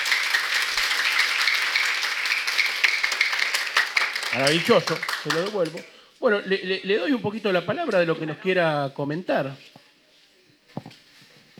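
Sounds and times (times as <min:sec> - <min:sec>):
audience applause: 0:00.0 - 0:05.8
speech: 0:04.4 - 0:09.7.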